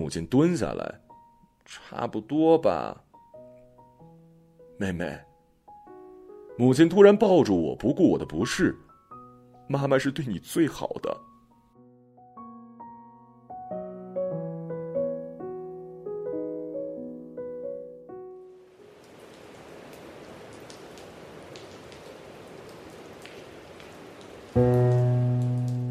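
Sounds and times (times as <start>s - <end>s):
speech: 0.1s - 1.0s, 1.7s - 3.0s, 4.8s - 5.3s, 6.6s - 8.8s, 9.7s - 11.3s
heavy rain in a night storm: 18.7s - 25.9s.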